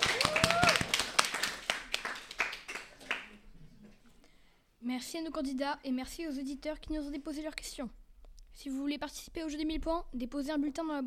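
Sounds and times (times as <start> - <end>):
audience applause for game contestants: 0.0 - 3.4
speech: 5.0 - 8.0, 8.6 - 11.0.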